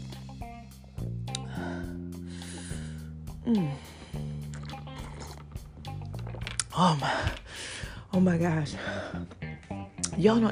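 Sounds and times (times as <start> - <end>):
person sipping tea: 2.3 - 7.9
speech: 3.4 - 3.9, 6.8 - 9.4, 10.2 - 10.5.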